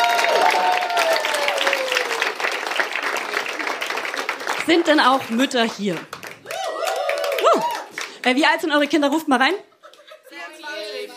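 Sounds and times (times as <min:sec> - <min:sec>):
audience applause: 0:00.0 - 0:08.4
speech: 0:04.7 - 0:06.2, 0:08.2 - 0:09.7.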